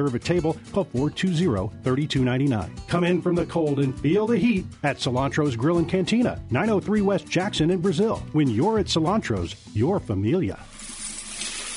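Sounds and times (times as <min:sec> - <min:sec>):
speech: 0:00.0 - 0:10.8
coins pouring down a drain: 0:10.7 - 0:11.7.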